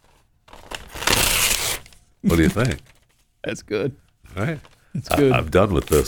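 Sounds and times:
crinkly paper being crumpled: 0:00.0 - 0:03.3, 0:04.5 - 0:06.0
speech: 0:02.2 - 0:06.0.

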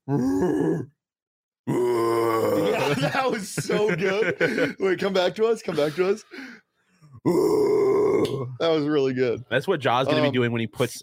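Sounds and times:
person imitating a grizzly bear growl: 0:00.0 - 0:01.0, 0:01.7 - 0:02.9, 0:07.2 - 0:08.6
speech: 0:00.1 - 0:01.0, 0:03.0 - 0:06.6, 0:07.2 - 0:11.0
laughter: 0:02.5 - 0:06.5.

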